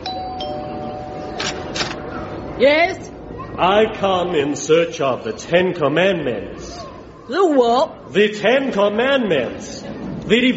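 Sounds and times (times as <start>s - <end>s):
doorbell chimes: 0.0s - 1.4s
speech: 2.6s - 10.5s.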